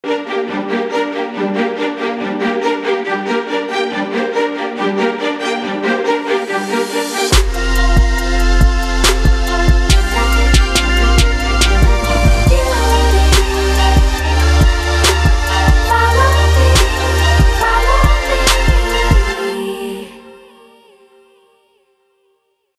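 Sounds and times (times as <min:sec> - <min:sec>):
vocals: 0:00.0 - 0:22.0.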